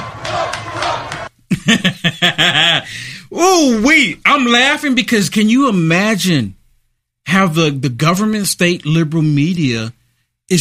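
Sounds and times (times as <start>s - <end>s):
crowd chanting and cheering in a street in Harlem: 0.0s - 1.3s
laughter: 0.2s - 3.0s
speech: 1.7s - 2.8s, 3.6s - 6.6s, 7.3s - 10.6s.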